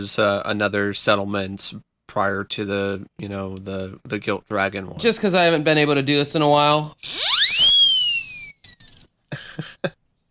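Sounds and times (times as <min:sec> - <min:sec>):
speech: 0:00.0 - 0:07.4
whistle being blown: 0:07.0 - 0:08.9.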